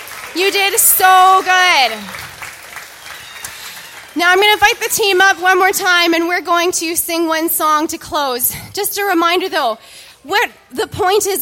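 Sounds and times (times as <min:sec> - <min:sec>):
audience applause: 0:00.0 - 0:05.5
speech: 0:00.4 - 0:02.2, 0:04.2 - 0:11.4.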